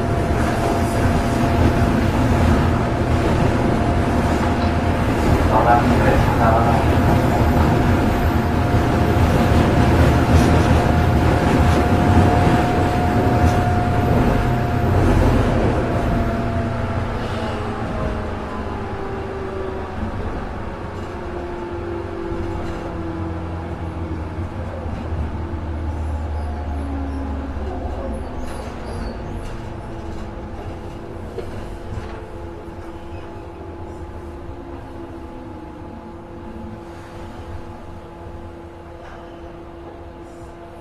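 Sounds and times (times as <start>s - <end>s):
Keiyo 103 series train: 0.0s - 40.7s.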